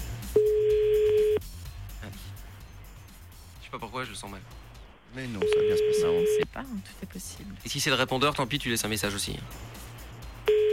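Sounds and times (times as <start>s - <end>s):
telephone ringing tone while calling someone: 0.4s - 1.4s, 5.4s - 6.4s, 10.5s - 10.7s
speech: 3.8s - 9.8s.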